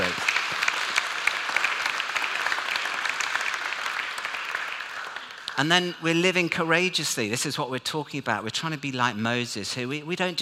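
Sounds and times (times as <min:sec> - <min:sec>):
audience applauding pod leaders: 0:00.0 - 0:05.9
speech: 0:05.6 - 0:10.3.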